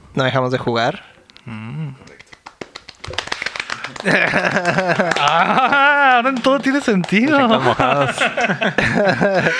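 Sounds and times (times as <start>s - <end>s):
speech: 0.2s - 2.2s, 4.0s - 9.5s
wet-sounding applause: 2.1s - 8.4s
laughter: 3.2s - 9.5s.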